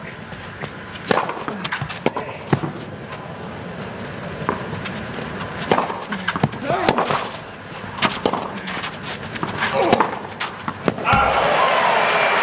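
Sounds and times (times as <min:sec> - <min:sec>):
tennis ball bouncing during a professional match: 0:00.0 - 0:11.3
tennis ball struck hard on a first serve: 0:00.6 - 0:02.8, 0:05.4 - 0:11.4
commentators talking: 0:06.0 - 0:10.2.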